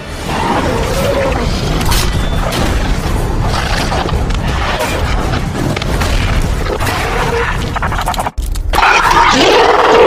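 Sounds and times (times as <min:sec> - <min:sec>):
crackling noise: 0:00.0 - 0:09.9.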